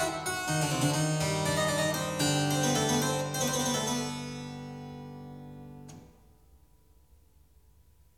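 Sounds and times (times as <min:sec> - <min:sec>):
prelude in G minor on clavier: 0:00.0 - 0:06.0.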